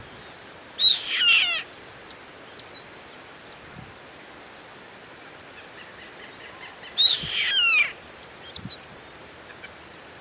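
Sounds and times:
rasping overtone-rich bird calls: 0.8s - 1.8s, 6.1s - 8.8s.

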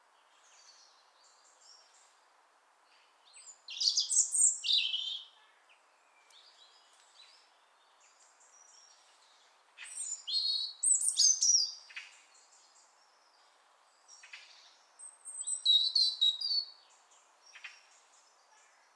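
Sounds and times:
European robin Erithacus rubecula giving shrill whistles and descending trills: 3.4s - 5.3s, 9.8s - 12.0s, 15.0s - 16.8s.

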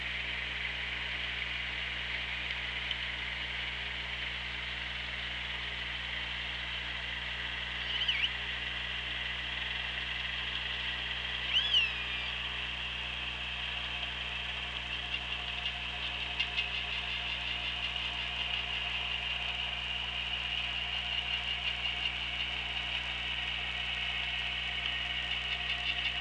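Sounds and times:
low hum: 0.0s - 26.1s
killer whale whistled call: 7.9s - 8.4s, 11.5s - 12.4s.

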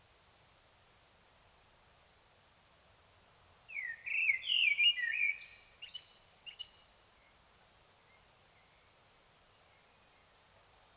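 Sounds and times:
common blackbird song: 3.7s - 6.9s.

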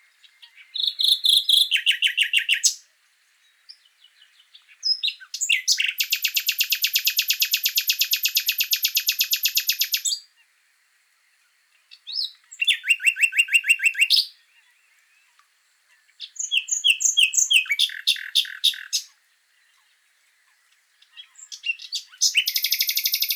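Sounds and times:
common nightingale song: 0.0s - 23.3s.

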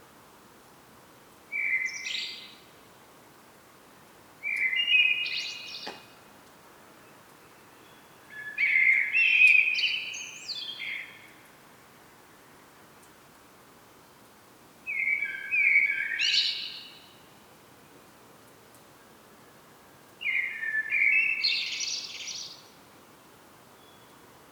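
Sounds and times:
Common blackbird singing: 1.6s - 2.5s, 4.4s - 6.1s, 7.6s - 11.3s, 14.9s - 17.0s, 20.2s - 22.6s.

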